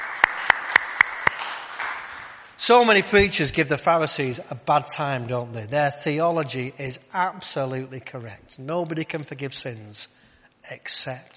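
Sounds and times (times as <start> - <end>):
audience applause: 0.0 - 2.5
speech: 2.7 - 11.3.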